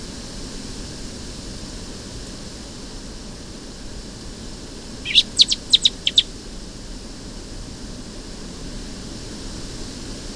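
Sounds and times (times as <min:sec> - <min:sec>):
Eurasian blackbird ticking calls: 0:05.0 - 0:06.3.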